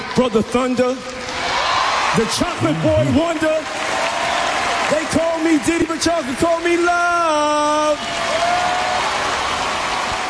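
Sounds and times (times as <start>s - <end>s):
speech: 0.2s - 1.2s, 2.1s - 3.9s, 4.9s - 8.5s
crowd screaming and cheering: 1.0s - 10.2s.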